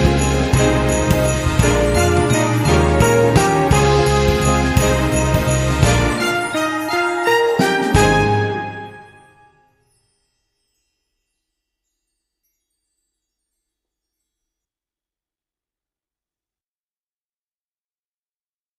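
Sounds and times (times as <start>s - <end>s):
jazz Christmas carol: 0.0s - 9.7s.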